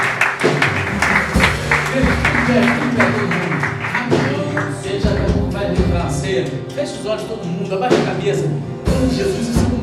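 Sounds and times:
crowd applause: 0.0s - 5.4s
speech: 2.6s - 3.4s, 6.4s - 9.7s.

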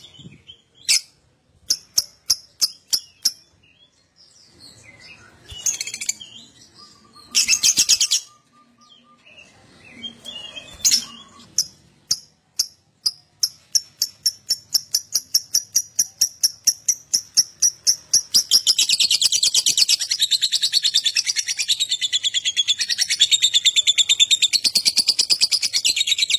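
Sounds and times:
lovebird chattering song: 0.9s - 3.5s, 10.9s - 26.3s.

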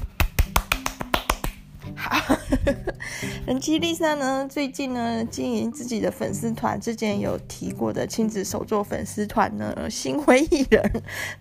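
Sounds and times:
hand clapping: 0.0s - 1.7s
speech: 2.3s - 11.4s.

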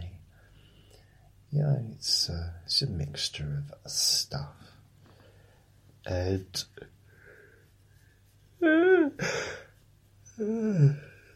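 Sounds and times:
speech: 1.5s - 4.8s, 6.0s - 7.0s, 8.6s - 9.6s, 10.4s - 11.1s
man yawning: 8.6s - 9.7s, 10.4s - 11.2s.

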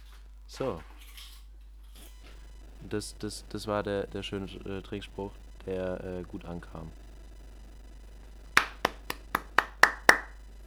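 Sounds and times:
speech: 0.5s - 0.9s, 2.8s - 7.0s
hand clapping: 8.6s - 10.4s.

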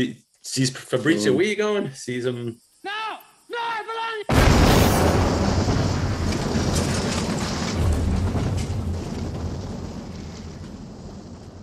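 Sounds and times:
speech: 0.0s - 2.6s
car being blown up: 4.3s - 11.6s.

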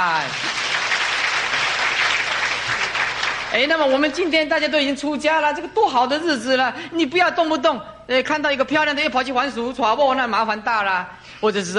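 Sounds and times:
audience applause: 0.0s - 3.8s
speech: 3.5s - 11.7s.

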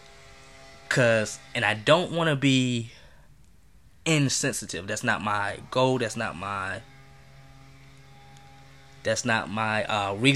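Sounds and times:
lawnmower running outside: 0.0s - 2.8s, 4.1s - 10.3s
speech: 1.0s - 3.0s, 4.0s - 6.9s, 9.0s - 10.3s.

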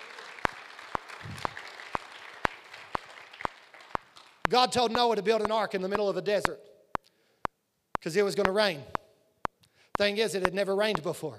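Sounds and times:
audience hand clapping: 0.0s - 5.6s
speech: 4.5s - 6.7s, 8.0s - 9.0s, 10.0s - 11.3s.

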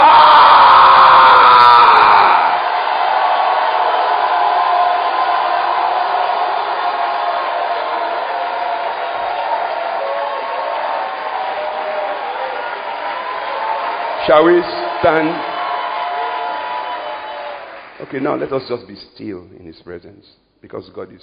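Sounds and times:
audience shouting in praise: 0.0s - 18.2s
speech: 14.3s - 15.5s, 18.0s - 21.2s.

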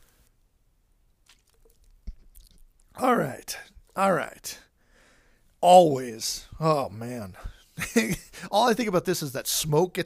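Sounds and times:
person taking a swig of water: 1.2s - 2.9s
speech: 3.0s - 4.6s, 5.6s - 10.0s.

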